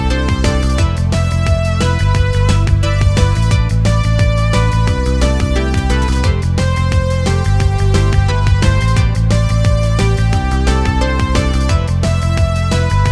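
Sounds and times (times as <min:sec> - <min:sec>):
game music: 0:00.0 - 0:13.1.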